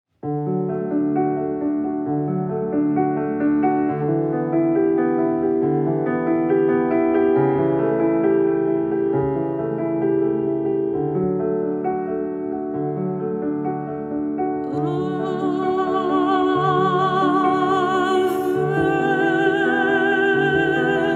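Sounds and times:
piano: 0.1 - 21.1
person singing: 14.6 - 21.1.

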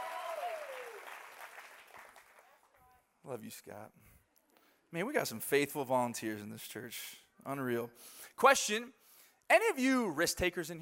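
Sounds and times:
audience clapping: 0.0 - 2.9
speech: 3.3 - 4.1, 4.9 - 10.8.

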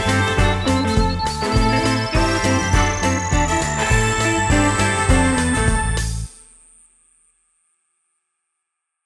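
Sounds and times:
fast swing music: 0.0 - 6.3.

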